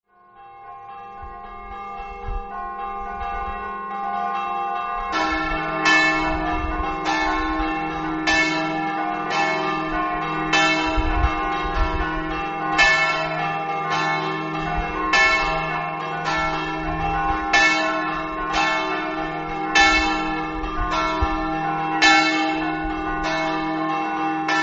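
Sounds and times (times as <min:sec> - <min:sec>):
bells ringing: 0:00.1 - 0:24.6.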